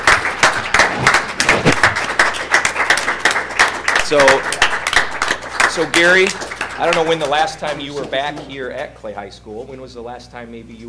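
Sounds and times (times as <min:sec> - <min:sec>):
audience applause: 0:00.0 - 0:08.5
speech: 0:04.1 - 0:04.6, 0:05.8 - 0:10.8.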